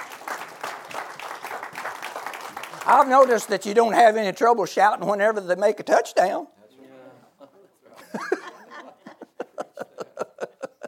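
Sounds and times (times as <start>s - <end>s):
church congregation clapping rhythmically in praise: 0.0s - 4.2s
speech: 2.9s - 6.6s
laughter: 7.2s - 10.8s.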